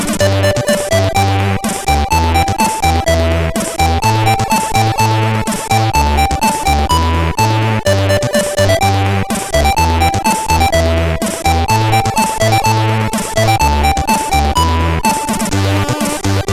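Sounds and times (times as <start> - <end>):
CSG8580R5 chip tune: 0.2 - 16.5.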